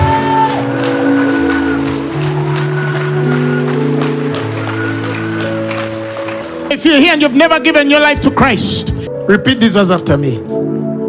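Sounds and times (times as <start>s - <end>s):
audience clapping: 0.0s - 8.1s
speech: 6.9s - 10.5s.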